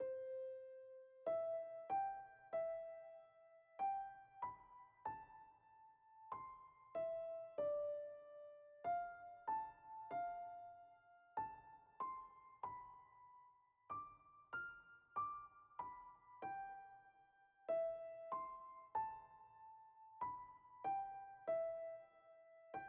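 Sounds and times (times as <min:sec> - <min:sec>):
piano: 0:00.0 - 0:22.8.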